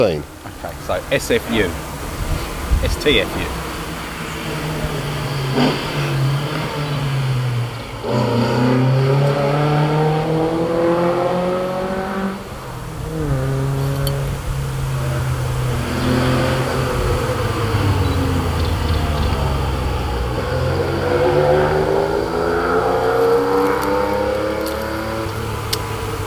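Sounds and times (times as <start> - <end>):
speech: 0.0 - 1.9, 2.8 - 3.6, 5.5 - 6.0, 8.1 - 8.5
1970s Alfa Romeo GTV then a Porsche 911 passing: 0.0 - 26.2.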